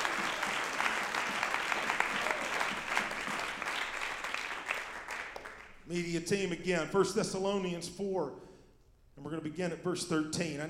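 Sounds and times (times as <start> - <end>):
people clapping hands: 0.0 - 5.9
speech: 5.9 - 8.5, 9.3 - 10.6.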